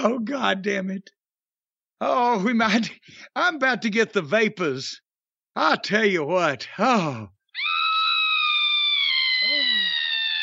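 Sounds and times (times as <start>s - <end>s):
speech: 0.0s - 1.2s, 2.0s - 5.0s, 5.6s - 7.8s
loud extended shrill scream: 7.5s - 10.4s.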